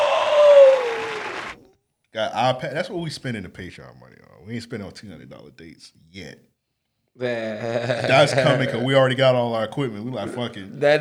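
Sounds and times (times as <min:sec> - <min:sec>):
canned applause from a soundboard: 0:00.0 - 0:01.6
speech: 0:02.2 - 0:06.5, 0:07.2 - 0:10.9
laughter: 0:07.2 - 0:09.2.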